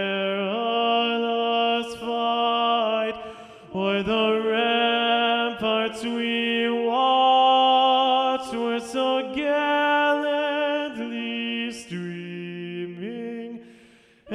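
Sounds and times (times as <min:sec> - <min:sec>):
baritone voice singing third part of three-part mixed choir: 0:00.0 - 0:13.6.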